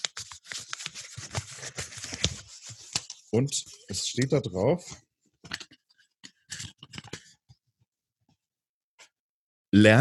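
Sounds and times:
taped paper scroll crackling and rustling as unrolled: 0:00.0 - 0:03.3
speech: 0:03.3 - 0:05.0, 0:09.7 - 0:09.9.

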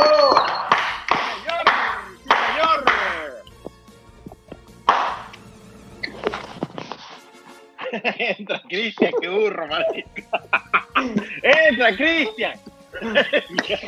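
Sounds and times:
hand clapping applause: 0:00.0 - 0:03.4, 0:04.8 - 0:05.4
laughter: 0:07.8 - 0:13.8
speech: 0:08.7 - 0:13.8.

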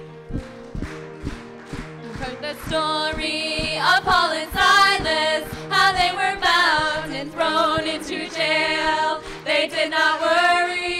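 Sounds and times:
group clapping in time with a song: 0:00.0 - 0:10.9
sustained musical tone: 0:00.0 - 0:10.9.

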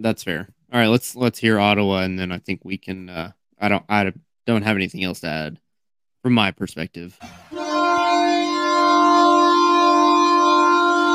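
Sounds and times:
speech: 0:00.0 - 0:05.6, 0:06.2 - 0:07.5
hockey goal horn blaring: 0:07.2 - 0:11.1.

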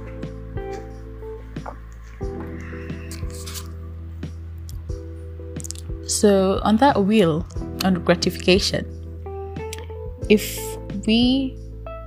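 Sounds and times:
person sipping water: 0:02.0 - 0:03.8
speech: 0:06.2 - 0:08.9, 0:10.3 - 0:11.6.

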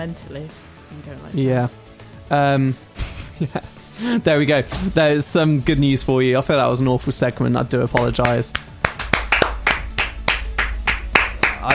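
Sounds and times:
speech: 0:00.0 - 0:08.8
laughter: 0:03.0 - 0:04.3
hand clapping: 0:07.9 - 0:11.7.

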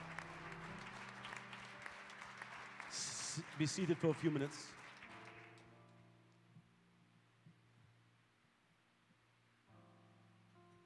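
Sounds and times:
audience clapping hands: 0:00.0 - 0:06.0
speech: 0:03.4 - 0:04.8.

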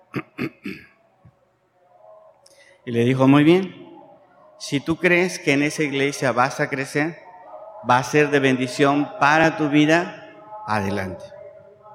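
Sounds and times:
pastor clearing his throat: 0:00.0 - 0:01.0
speech: 0:00.1 - 0:00.7, 0:02.9 - 0:03.8, 0:04.6 - 0:07.2, 0:07.8 - 0:11.3.

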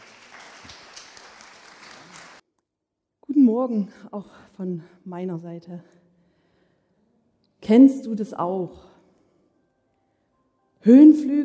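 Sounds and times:
audience applause: 0:00.0 - 0:02.4
speech: 0:03.5 - 0:06.0, 0:07.7 - 0:08.9, 0:10.8 - 0:11.4.

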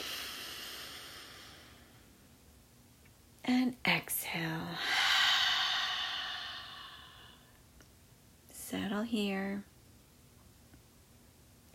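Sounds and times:
nasal inhale during a guided breathing exercise: 0:00.0 - 0:02.1, 0:04.7 - 0:07.6
speech: 0:03.7 - 0:05.0, 0:08.7 - 0:09.7.

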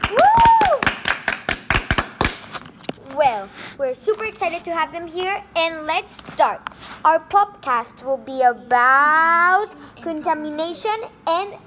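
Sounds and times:
small group applause: 0:00.0 - 0:02.6
rising-and-falling whistle or whoop: 0:00.1 - 0:00.8
speech: 0:03.9 - 0:11.6.

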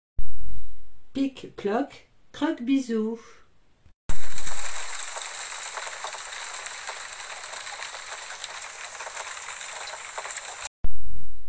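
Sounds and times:
speech: 0:01.2 - 0:03.4
steady rain pouring: 0:04.1 - 0:10.7
drips pattering: 0:04.2 - 0:10.7.

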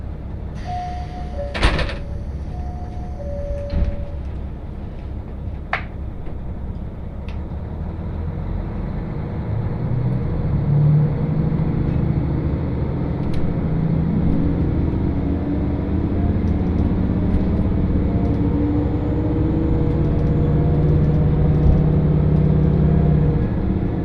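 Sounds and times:
KiHa 40 train rumbling on the Hakodate Main Line: 0:00.0 - 0:24.0
train door clunks: 0:01.4 - 0:02.2, 0:03.5 - 0:04.2.

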